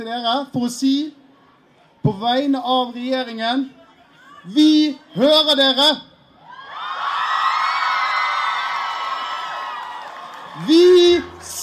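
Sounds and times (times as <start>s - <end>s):
speech: 0.0s - 1.2s, 2.0s - 3.8s, 4.4s - 6.1s, 10.6s - 11.6s
large crowd cheering and whooping at climate demonstration: 6.4s - 11.6s.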